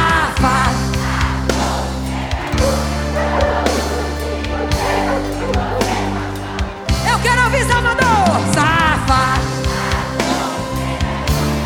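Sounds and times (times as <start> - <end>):
laughter: 0.0 - 11.6
dog barking: 2.6 - 6.5.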